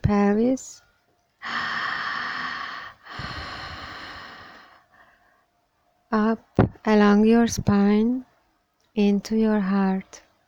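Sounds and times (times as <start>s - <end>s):
speech: 0.1s - 0.8s, 6.1s - 8.3s, 9.0s - 10.2s
deep slow breaths drawn in during a guided breathing exercise: 1.4s - 5.5s.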